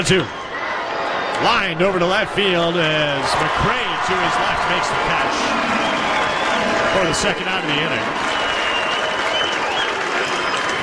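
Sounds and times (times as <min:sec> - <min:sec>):
speech: 0:00.0 - 0:00.4, 0:01.4 - 0:05.7, 0:06.9 - 0:08.4
baseball crowd cheering and clapping after a catch: 0:00.0 - 0:10.8.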